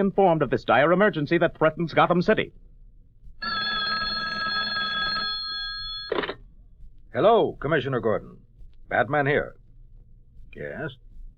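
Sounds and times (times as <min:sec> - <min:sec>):
speech: 0:00.0 - 0:02.7, 0:07.1 - 0:09.6, 0:10.6 - 0:11.0
hotline telephone bell ringing: 0:03.4 - 0:06.4.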